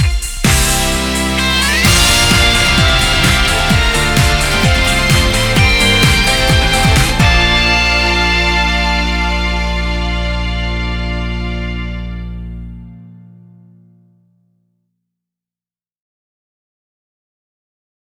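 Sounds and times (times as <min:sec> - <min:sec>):
off vocal instrumental music: 0:00.0 - 0:13.8.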